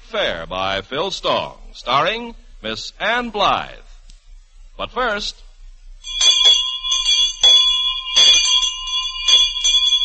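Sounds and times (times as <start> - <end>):
speech: 0.1 - 3.8, 4.8 - 5.4
bell ringing: 6.0 - 10.0.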